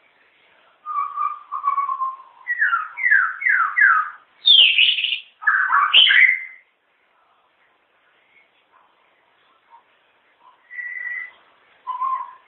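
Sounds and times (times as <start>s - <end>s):
White-rumped shama song: 0.8s - 6.7s, 10.4s - 12.4s.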